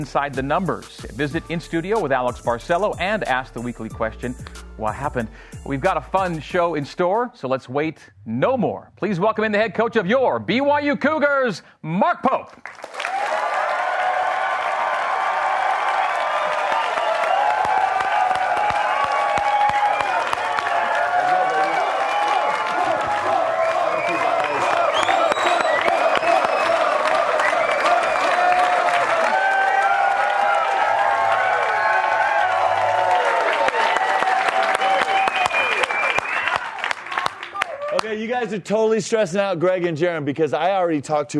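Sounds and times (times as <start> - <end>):
speech: 0.0 - 13.0, 38.6 - 41.3
large crowd applauding: 12.6 - 38.3
scattered whoops and shouted cheers: 13.0 - 38.1.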